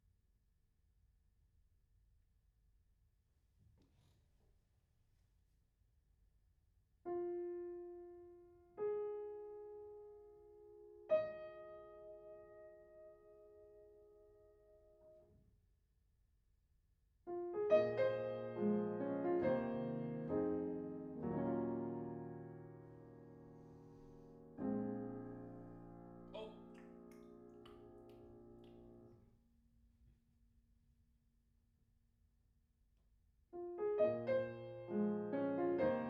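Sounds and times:
piano in a room: 7.1 - 15.5, 17.3 - 29.4, 33.5 - 36.0.

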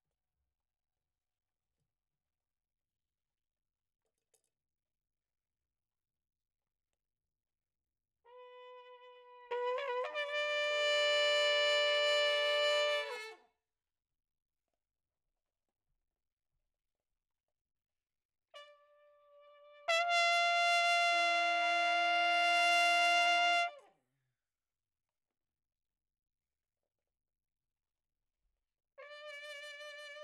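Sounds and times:
trumpet: 8.3 - 13.5, 18.6 - 23.9, 29.0 - 30.2.

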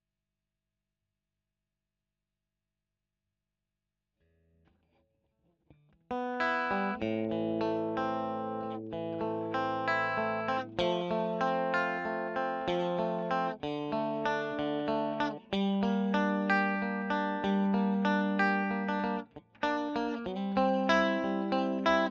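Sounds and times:
electric guitar: 6.1 - 22.1.

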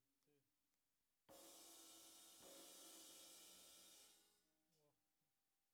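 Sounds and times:
snare drum: 1.3 - 4.3.

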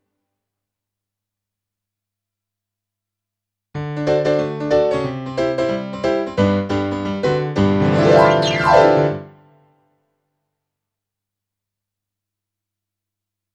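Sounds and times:
rock and roll piano: 3.8 - 9.2.

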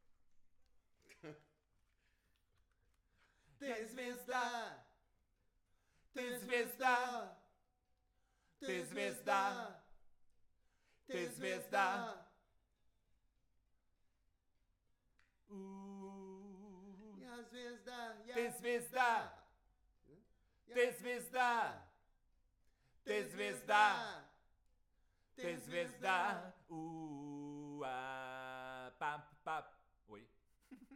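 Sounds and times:
vocals: 3.2 - 5.0, 5.8 - 7.6, 8.4 - 10.0, 10.8 - 12.4, 15.2 - 22.0, 22.7 - 24.5, 25.2 - 30.3.

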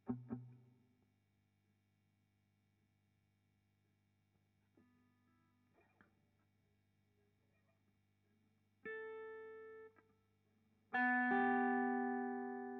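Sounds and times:
guitar recorded with Royer microphone: 0.0 - 0.9, 4.6 - 6.6, 7.2 - 12.7.

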